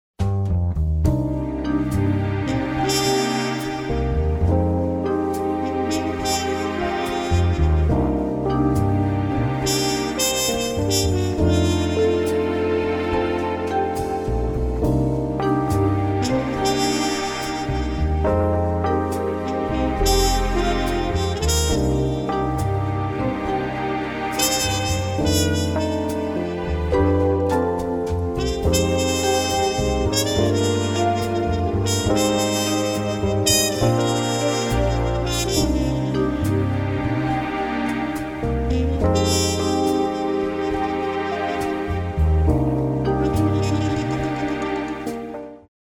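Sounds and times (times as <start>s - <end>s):
light jazz: 0.2s - 45.7s.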